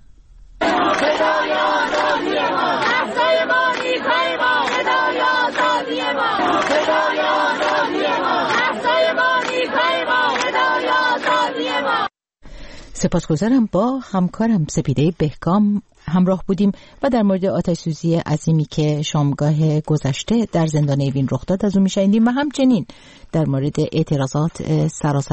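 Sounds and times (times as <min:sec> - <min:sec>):
crowd of University of Tehran students: 0:00.6 - 0:12.1
speech: 0:13.0 - 0:25.3.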